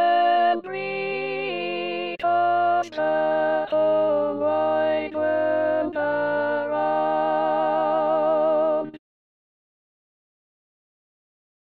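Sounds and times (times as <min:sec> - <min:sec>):
alto singing a chorale: 0:00.0 - 0:09.0.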